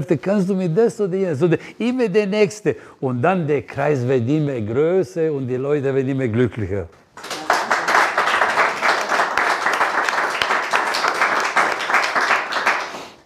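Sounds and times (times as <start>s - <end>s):
speech: 0.0s - 7.0s
audience applause: 7.2s - 13.2s.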